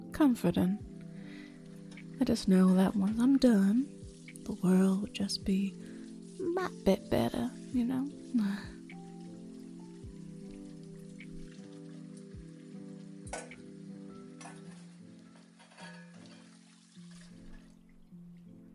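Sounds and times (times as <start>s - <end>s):
speech: 0.2s - 0.9s, 2.2s - 5.9s, 6.5s - 8.8s
running water splashing while washing dishes: 1.0s - 18.7s
dishes clinking and clattering: 13.3s - 13.7s, 14.4s - 16.6s.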